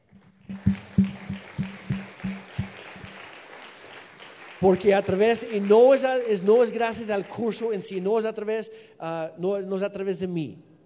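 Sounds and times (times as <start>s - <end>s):
audience applause: 0.5s - 7.4s
speech: 4.6s - 10.7s.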